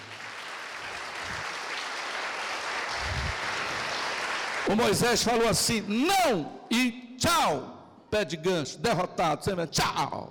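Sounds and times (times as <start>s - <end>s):
audience applause: 0.0s - 4.8s
speech: 4.7s - 10.2s.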